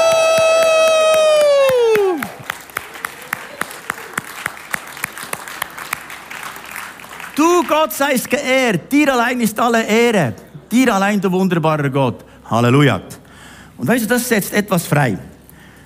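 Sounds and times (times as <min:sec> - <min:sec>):
crowd cheering a shout of joy: 0:00.0 - 0:07.7
speech: 0:07.7 - 0:13.2, 0:13.8 - 0:15.3.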